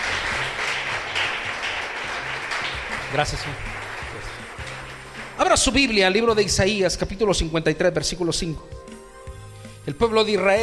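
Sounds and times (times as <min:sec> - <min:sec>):
church congregation clapping in praise during a worship service: 0:00.0 - 0:06.1
speech: 0:03.1 - 0:03.7, 0:05.4 - 0:08.8, 0:09.8 - 0:10.6.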